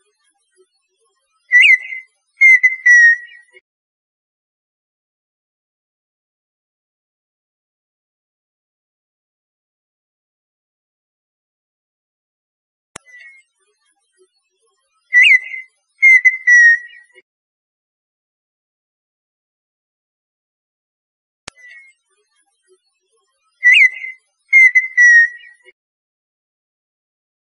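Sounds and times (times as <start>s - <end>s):
partridge song of clicks and whistles: 1.5s - 3.6s, 15.1s - 17.2s, 23.6s - 25.7s.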